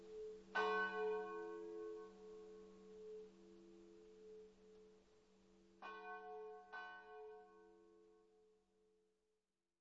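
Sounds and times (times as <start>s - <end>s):
bells in Paularo: 0.0s - 7.9s.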